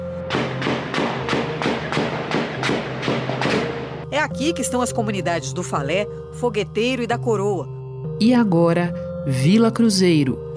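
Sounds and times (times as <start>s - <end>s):
gunshots echoing through neighborhood: 0.3s - 4.0s
speech: 4.2s - 10.5s.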